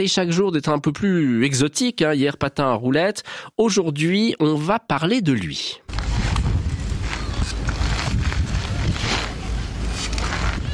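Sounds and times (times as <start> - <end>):
speech: 0.0 - 6.0
unicycle riding back and forth: 5.9 - 10.7.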